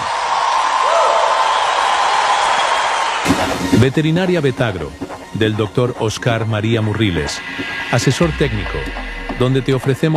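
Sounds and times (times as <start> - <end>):
audience applause: 0.0 - 3.6
speech: 3.8 - 10.1.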